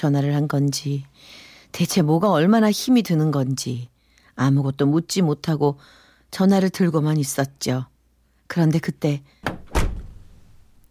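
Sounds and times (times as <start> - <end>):
speech: 0.0 - 7.9, 8.5 - 9.4
car door closing: 9.4 - 10.6.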